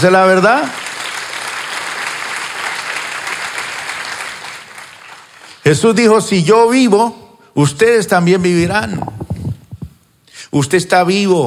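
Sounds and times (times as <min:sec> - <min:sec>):
speech: 0:00.0 - 0:00.8, 0:05.7 - 0:09.3, 0:10.5 - 0:11.4
audience applause: 0:00.6 - 0:05.6.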